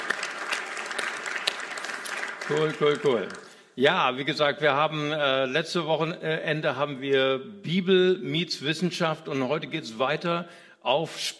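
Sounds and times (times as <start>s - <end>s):
audience applause: 0.0s - 3.6s
speech: 2.5s - 11.3s.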